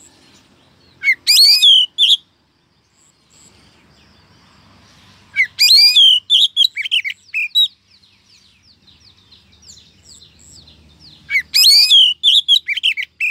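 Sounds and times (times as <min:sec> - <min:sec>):
female Oriental magpie-robin calling the male: 0:00.8 - 0:02.3, 0:05.3 - 0:07.8, 0:09.7 - 0:13.2.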